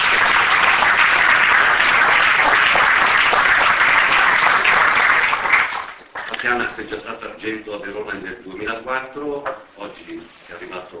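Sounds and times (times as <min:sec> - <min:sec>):
audience applause: 0:00.0 - 0:06.7
speech: 0:06.5 - 0:10.9.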